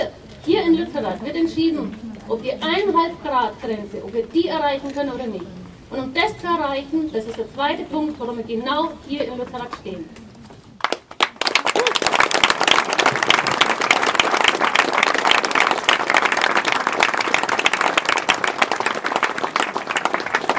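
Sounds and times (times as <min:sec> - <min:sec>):
speech: 0:00.8 - 0:10.2
audience applause: 0:10.8 - 0:20.5.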